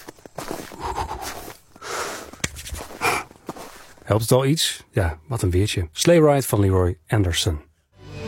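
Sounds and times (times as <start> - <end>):
person imitating footsteps crunching through snow: 0.0 - 4.2
speech: 4.1 - 7.7.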